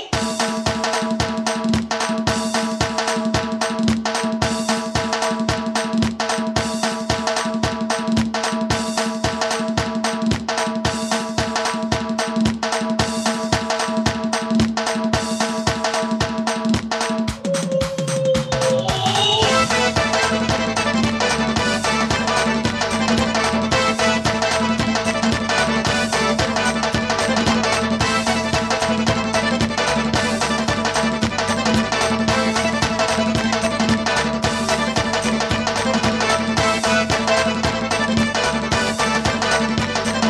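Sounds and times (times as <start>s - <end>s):
Chechen lezginka dance music medley: 0.1s - 40.2s.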